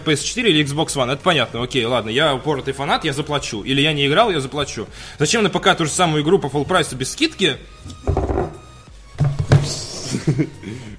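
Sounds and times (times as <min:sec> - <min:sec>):
speech: 0:00.0 - 0:08.1, 0:10.3 - 0:10.8
drinking glass being knocked: 0:07.9 - 0:09.7.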